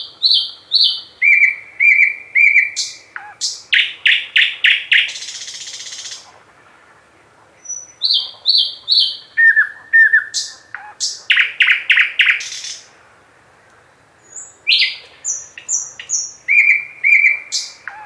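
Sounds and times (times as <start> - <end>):
thrush nightingale singing: 0.0 - 6.3, 7.6 - 12.9, 13.6 - 18.0.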